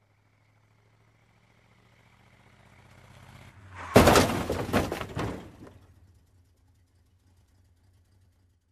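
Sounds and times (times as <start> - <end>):
car approaching: 0.0 - 8.6
car crash: 3.6 - 6.0.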